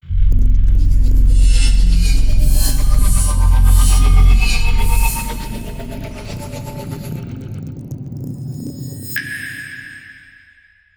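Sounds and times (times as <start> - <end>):
big logo sound: 0.0 - 6.5.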